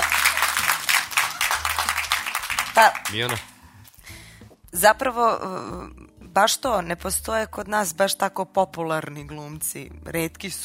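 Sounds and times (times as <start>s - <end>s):
audience clapping on request from an actor: 0.0s - 3.5s
speech: 2.8s - 3.5s, 4.7s - 10.6s.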